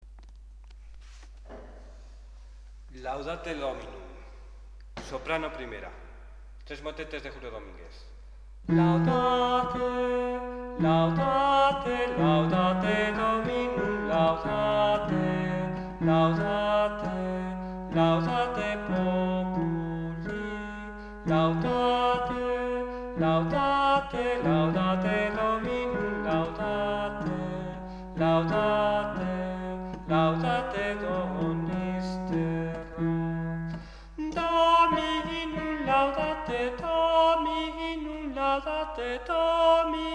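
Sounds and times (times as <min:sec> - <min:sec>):
soprano singing: 0:08.7 - 0:40.1.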